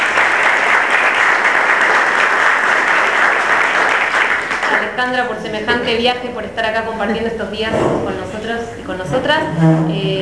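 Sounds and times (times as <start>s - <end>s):
audience applause welcoming a researcher at a talk: 0.0s - 4.9s
speech: 5.0s - 10.1s.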